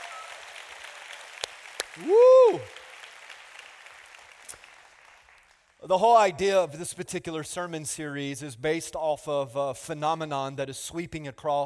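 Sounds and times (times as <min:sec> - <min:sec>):
audience applause: 0:00.0 - 0:05.8
speech: 0:02.0 - 0:02.8, 0:05.8 - 0:11.6.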